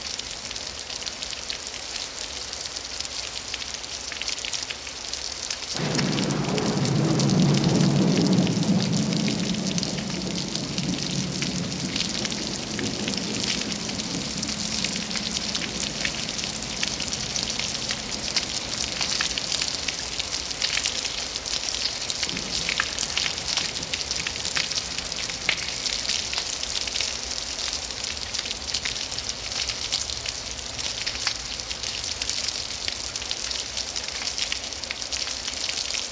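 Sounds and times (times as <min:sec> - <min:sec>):
light and heavy rain: 0:00.0 - 0:36.1
thunder: 0:05.8 - 0:20.8, 0:22.1 - 0:26.4.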